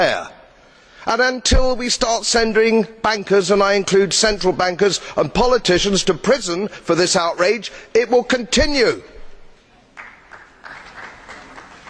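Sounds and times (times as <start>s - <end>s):
speech: 1.0s - 9.2s
modest applause in a parliament chamber: 9.9s - 11.8s.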